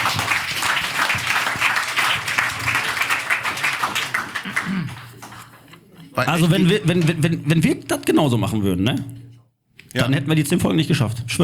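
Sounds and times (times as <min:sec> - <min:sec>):
audience applause: 0:00.0 - 0:05.6
speech: 0:06.2 - 0:09.2, 0:10.0 - 0:11.4.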